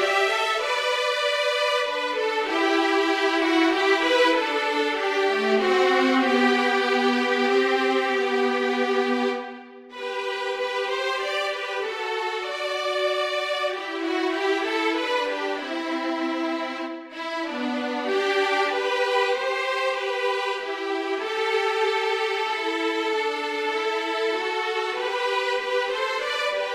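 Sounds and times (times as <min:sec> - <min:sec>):
violin duet: 0:00.0 - 0:26.7.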